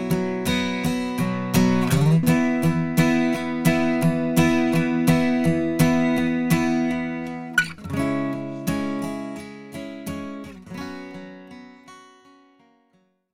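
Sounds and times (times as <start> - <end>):
acoustic guitar with EQ: 0.0 - 13.3.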